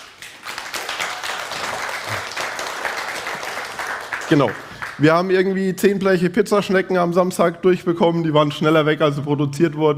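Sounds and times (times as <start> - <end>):
audience applause: 0.0 - 5.1
speech: 4.3 - 9.9.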